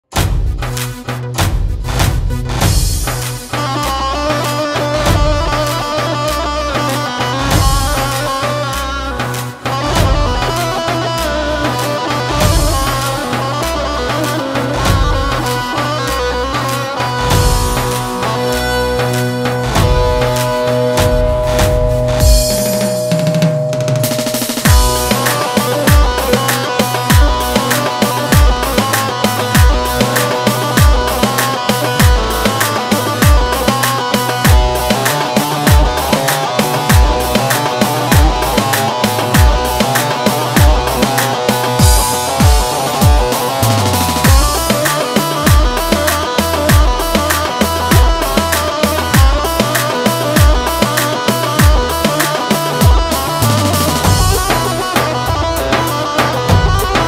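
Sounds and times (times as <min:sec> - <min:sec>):
halay folk dance music: 0:00.0 - 0:57.0.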